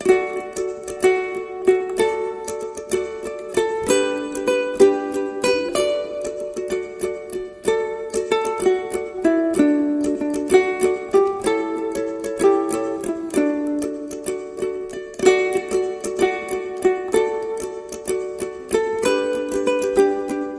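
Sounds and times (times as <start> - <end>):
ukulele playing Christmas carol: 0.0 - 20.5.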